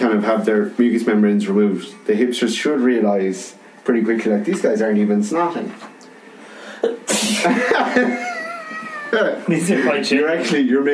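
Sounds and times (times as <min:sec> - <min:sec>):
speech: 0:00.1 - 0:05.9, 0:06.8 - 0:08.3, 0:09.1 - 0:10.9
sneeze: 0:07.1 - 0:07.5.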